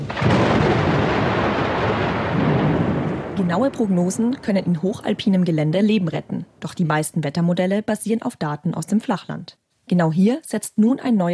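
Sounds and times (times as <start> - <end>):
thunder rumbling: 0.0 - 7.0
speech: 3.5 - 11.3.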